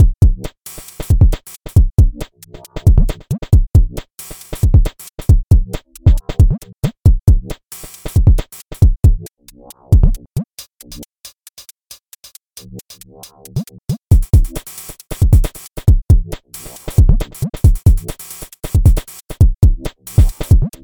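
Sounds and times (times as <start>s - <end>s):
drum loop: 0.0s - 9.2s, 9.8s - 12.4s, 14.1s - 20.8s.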